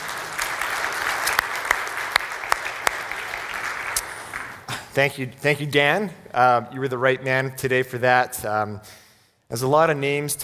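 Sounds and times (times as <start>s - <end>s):
audience applause: 0.0s - 4.7s
speech: 5.0s - 10.4s.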